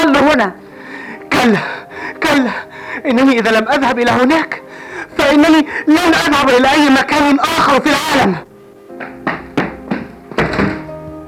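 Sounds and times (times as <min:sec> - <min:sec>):
speech: 0:00.3 - 0:00.6, 0:01.4 - 0:04.6, 0:05.2 - 0:09.4
door slamming: 0:09.0 - 0:11.0.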